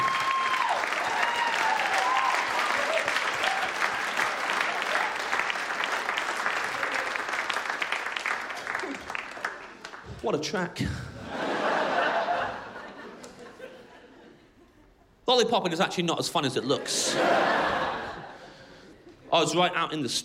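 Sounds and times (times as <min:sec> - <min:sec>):
voices or whoops: 0:00.0 - 0:03.8
crowd clapping: 0:00.0 - 0:10.2
speech: 0:10.3 - 0:11.1, 0:15.3 - 0:17.9, 0:19.3 - 0:20.2
laughter: 0:11.2 - 0:15.2, 0:16.8 - 0:19.3.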